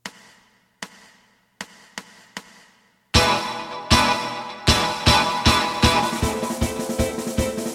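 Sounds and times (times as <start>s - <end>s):
bass: 3.2s - 7.6s.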